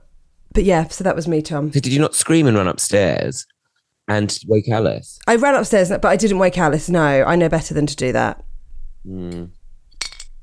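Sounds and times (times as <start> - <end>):
speech: 0.6 - 8.4, 9.0 - 9.6
glass clinking while sipping water: 9.3 - 10.4.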